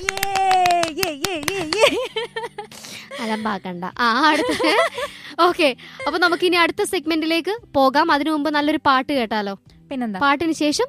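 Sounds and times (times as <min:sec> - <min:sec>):
hand clapping from one person: 0:00.0 - 0:02.5
person talking and laughing: 0:00.0 - 0:07.0
speech: 0:03.2 - 0:10.8.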